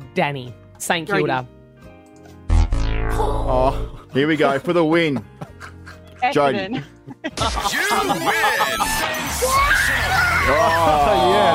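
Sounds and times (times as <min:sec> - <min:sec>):
speech: 0:00.2 - 0:01.6, 0:03.5 - 0:05.4, 0:06.2 - 0:11.5
laughter: 0:04.5 - 0:09.4
children screaming in excitement: 0:08.3 - 0:11.5.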